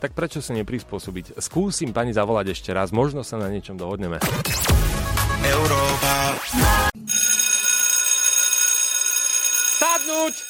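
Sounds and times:
speech: 0:00.0 - 0:06.9, 0:10.2 - 0:10.4
bell ringing: 0:07.0 - 0:10.4.

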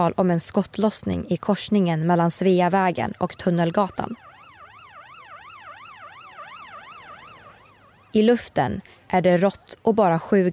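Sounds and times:
speech: 0:00.0 - 0:04.3, 0:08.1 - 0:10.5
ambulance siren wailing: 0:02.8 - 0:08.5.

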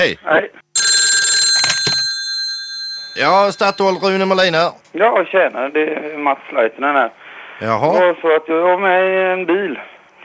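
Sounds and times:
speech: 0:00.0 - 0:00.6, 0:03.2 - 0:10.0
telephone bell ringing on outgoing call: 0:00.8 - 0:04.5.

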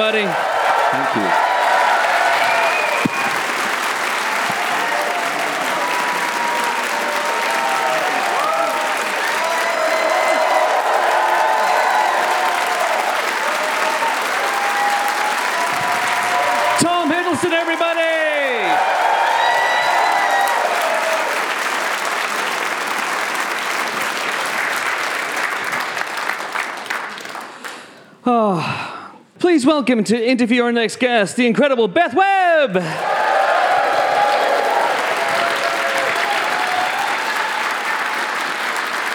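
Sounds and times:
speech: 0:00.0 - 0:01.5, 0:29.6 - 0:33.2
live audience at Kings Place, London applauding Tom Hiddleston: 0:00.0 - 0:27.8, 0:32.8 - 0:39.1
scattered whoops from the audience: 0:00.8 - 0:03.4, 0:04.2 - 0:16.8, 0:18.6 - 0:21.4, 0:33.0 - 0:38.3.

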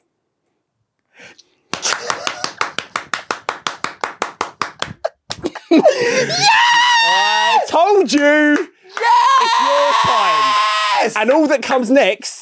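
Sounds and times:
round of applause: 0:01.7 - 0:05.5, 0:08.1 - 0:10.5
laughter: 0:01.8 - 0:02.9, 0:04.8 - 0:06.8
speech: 0:05.7 - 0:06.7, 0:07.9 - 0:08.8, 0:11.0 - 0:12.3.

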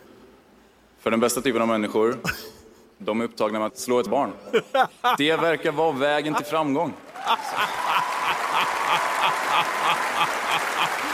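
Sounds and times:
speech: 0:01.0 - 0:07.9
laughter: 0:04.4 - 0:11.1
audience cheering and applause: 0:07.0 - 0:11.1.

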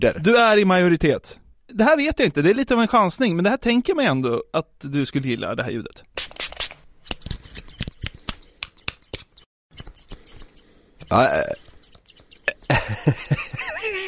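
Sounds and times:
speech: 0:00.0 - 0:06.4, 0:11.1 - 0:11.6, 0:12.7 - 0:14.0
scissors snipping through hair during a haircut: 0:06.5 - 0:12.9
laughter: 0:12.7 - 0:14.0.

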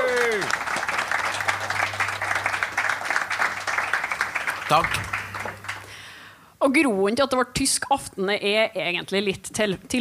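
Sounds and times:
live audience applause: 0:00.0 - 0:06.1
speech: 0:04.7 - 0:05.1, 0:06.6 - 0:09.9.

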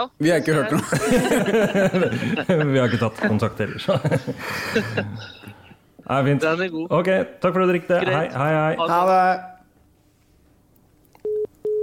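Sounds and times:
speech: 0:00.0 - 0:05.5, 0:06.1 - 0:09.5
laughter: 0:00.3 - 0:05.6
phone busy tone beeps: 0:11.2 - 0:11.8.

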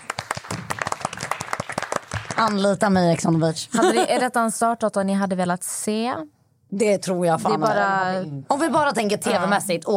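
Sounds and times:
audience applause: 0:00.0 - 0:02.5
speech: 0:02.4 - 0:09.9.

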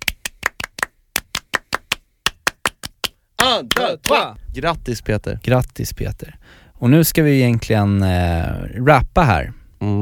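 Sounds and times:
short rhythmic hand clapping, a French applause: 0:00.0 - 0:04.4
speech: 0:03.4 - 0:10.0.

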